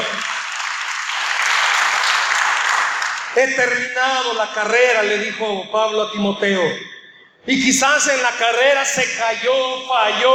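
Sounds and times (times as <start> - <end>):
audience applause: 0.0 - 3.4
speech: 3.4 - 10.3.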